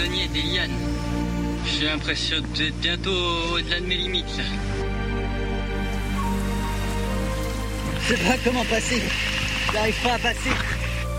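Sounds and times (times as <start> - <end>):
speech: 0.0 - 5.0, 8.1 - 10.8
rainstorm: 5.7 - 11.1.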